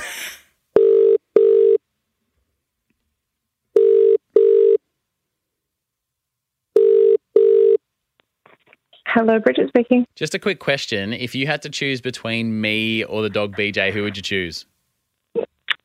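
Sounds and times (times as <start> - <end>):
phone ringback tone: 0.8 - 1.8, 3.8 - 4.8, 6.8 - 7.8
speech: 9.2 - 14.7.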